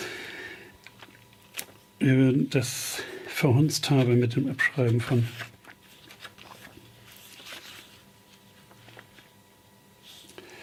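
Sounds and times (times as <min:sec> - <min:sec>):
pages being leafed through: 0:00.9 - 0:01.8, 0:03.8 - 0:10.4
speech: 0:02.0 - 0:05.5.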